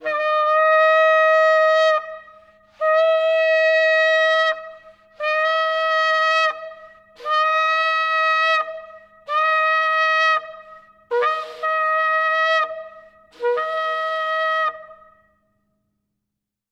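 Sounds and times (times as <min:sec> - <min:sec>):
trumpet: 0:00.0 - 0:15.3.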